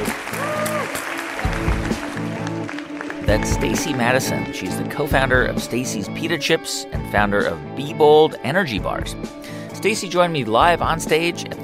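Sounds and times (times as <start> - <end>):
live audience applause at a business summit at Yerba Buena: 0.0 - 4.8
steady music with a low sustained tone: 1.4 - 11.6
speech: 3.3 - 11.6.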